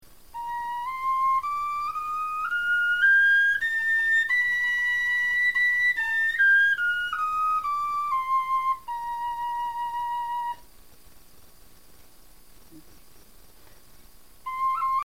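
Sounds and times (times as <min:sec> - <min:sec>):
bone flute playing a scale: 0:00.3 - 0:10.7, 0:14.4 - 0:15.0.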